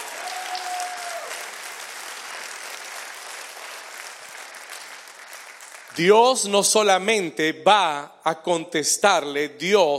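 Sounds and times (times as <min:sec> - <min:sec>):
audience applause: 0:00.0 - 0:06.1
speech: 0:06.0 - 0:09.9.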